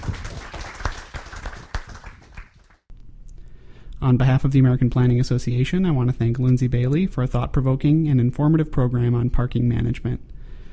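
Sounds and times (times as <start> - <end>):
audience applause: 0.0 - 2.8
speech: 4.0 - 10.4.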